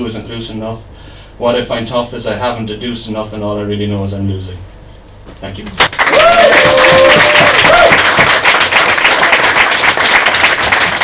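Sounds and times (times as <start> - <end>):
speech: 0.0 - 4.7, 5.4 - 8.0
audience applause: 5.8 - 11.0.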